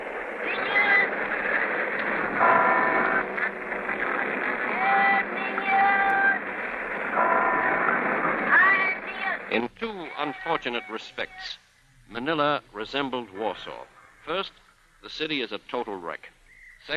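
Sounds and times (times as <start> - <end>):
roar of street traffic: 0.0 - 9.6
ringing bell tones: 2.4 - 6.4, 7.1 - 9.4
speech: 10.5 - 16.9.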